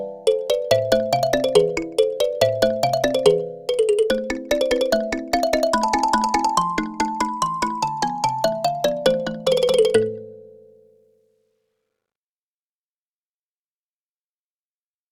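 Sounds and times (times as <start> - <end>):
kalimba: 0.0 - 10.9.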